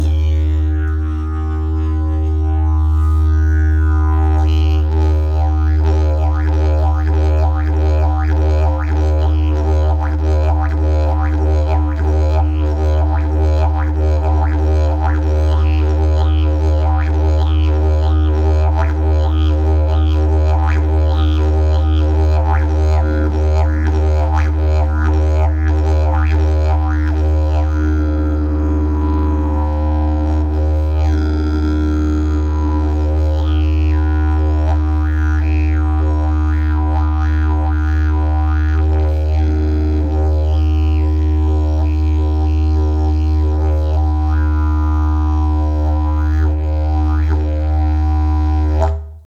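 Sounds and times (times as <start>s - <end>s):
didgeridoo: 0.0s - 49.2s.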